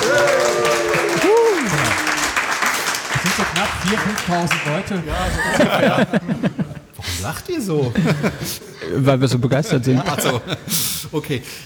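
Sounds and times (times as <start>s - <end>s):
audience cheering: 0.0s - 6.3s
laughter: 0.0s - 11.5s
speech: 3.8s - 11.6s.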